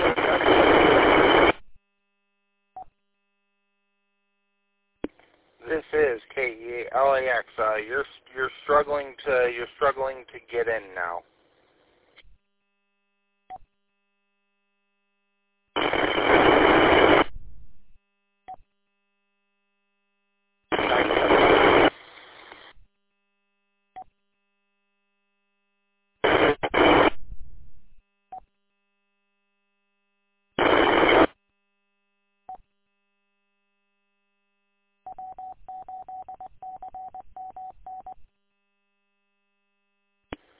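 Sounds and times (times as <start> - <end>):
amateur radio repeater static bursts: 0.0 - 1.6, 5.1 - 11.2, 15.8 - 17.3, 20.7 - 22.8, 26.2 - 27.2, 30.6 - 31.3
speech: 7.4 - 11.3.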